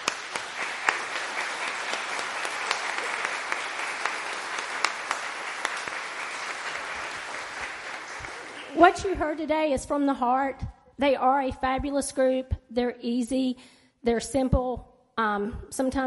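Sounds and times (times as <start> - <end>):
round of applause: 0.0 - 9.4
speech: 8.8 - 16.0.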